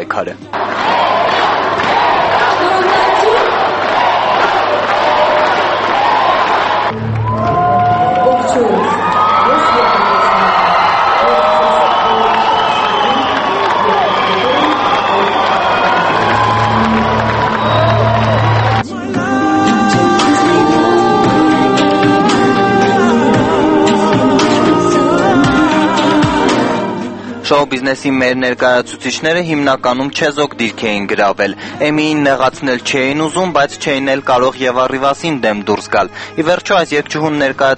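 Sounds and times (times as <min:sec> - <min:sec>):
speech: 0:00.0 - 0:01.3, 0:08.6 - 0:09.0, 0:27.5 - 0:37.7
crowd cheering and shouting in a hall: 0:00.5 - 0:27.1.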